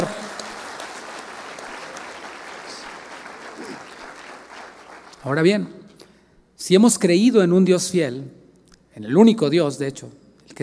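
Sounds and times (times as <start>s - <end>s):
audience applause: 0.0s - 5.3s
speech: 5.2s - 5.8s, 6.7s - 8.4s, 9.0s - 10.6s.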